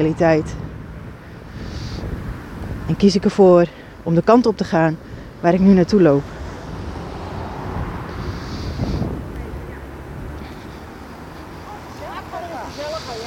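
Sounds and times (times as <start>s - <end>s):
speech: 0.0s - 0.6s, 2.9s - 6.4s
low traffic rumble on a busy street: 0.0s - 13.2s
vehicle passing: 0.0s - 13.2s
wind buffeting: 0.0s - 13.2s
high chirps and squeaks: 8.2s - 13.2s.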